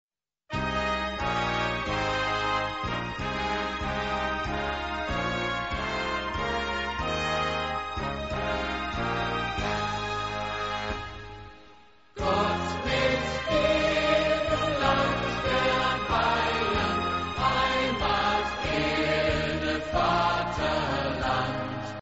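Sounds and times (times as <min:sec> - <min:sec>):
anthem music: 0:00.6 - 0:22.0.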